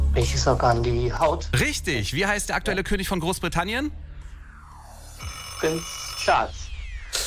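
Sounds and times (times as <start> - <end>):
speech: 0.2 - 4.0, 5.6 - 6.6
alarm clock ringing: 5.2 - 7.1.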